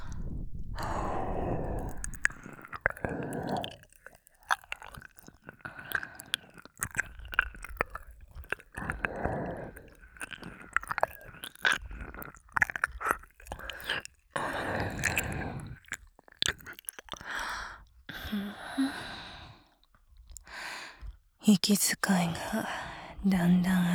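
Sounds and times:
ear licking: 0.8s - 19.1s
nurse speaking in a low cool voice: 21.4s - 23.9s.

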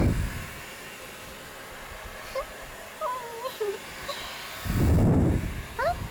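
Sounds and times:
hair dryer blowing: 0.0s - 6.0s.

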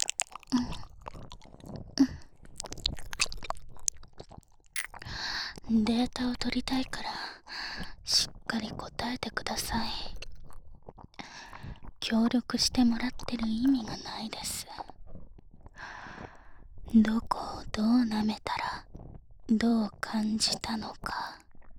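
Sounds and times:
woman whispering in an erotic audio drama: 0.0s - 0.9s, 5.0s - 10.3s, 12.0s - 15.0s, 16.9s - 18.9s, 19.5s - 21.5s
ear licking: 0.0s - 5.7s.

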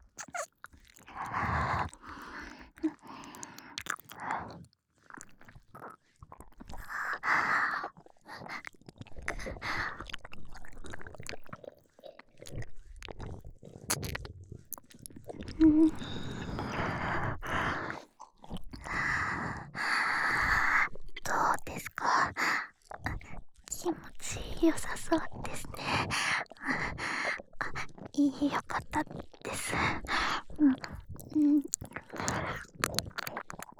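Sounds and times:
fellatio sounds: 0.0s - 4.6s, 12.4s - 18.0s, 23.8s - 33.7s
nipple licking sounds: 0.0s - 33.7s
ear licking sounds: 0.1s - 19.0s, 24.0s - 33.7s.

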